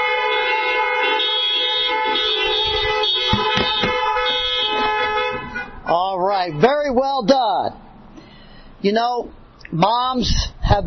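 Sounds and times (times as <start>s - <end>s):
car horns honking: 0.0s - 7.4s
speech: 6.4s - 7.7s, 8.8s - 10.8s.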